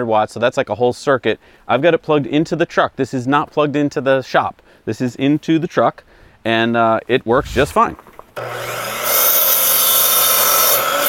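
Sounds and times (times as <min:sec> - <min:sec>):
speech: 0:00.0 - 0:08.9
miter saw cutting wood: 0:08.4 - 0:11.0.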